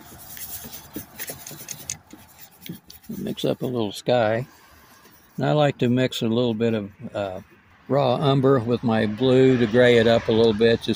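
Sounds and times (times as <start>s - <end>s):
paintbrush strokes on a plein air landscape painting: 0.0s - 7.6s
speech: 3.3s - 4.6s, 5.4s - 10.9s.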